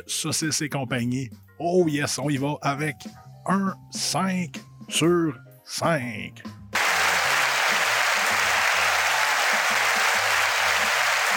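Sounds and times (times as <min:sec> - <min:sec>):
speech: 0:00.0 - 0:06.6
applause: 0:06.8 - 0:11.3.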